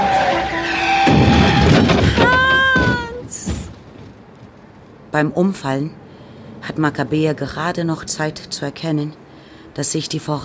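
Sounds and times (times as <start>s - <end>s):
car tires screeching: 0.0s - 3.1s
speech: 5.2s - 6.0s, 6.7s - 9.2s, 9.8s - 10.4s.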